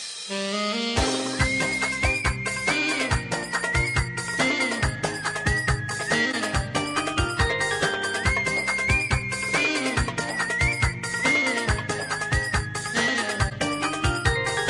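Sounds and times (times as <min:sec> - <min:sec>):
desert melody: 0:00.3 - 0:14.6.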